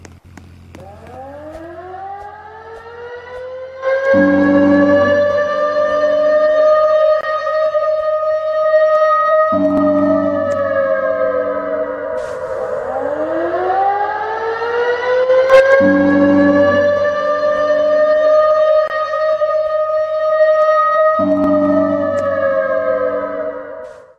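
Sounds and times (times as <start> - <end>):
air raid siren: 0.6 - 24.1.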